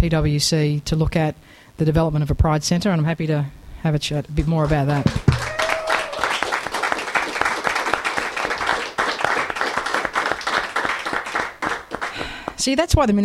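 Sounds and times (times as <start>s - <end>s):
speech: 0.0s - 5.3s, 12.6s - 13.2s
audience clapping: 4.4s - 12.7s.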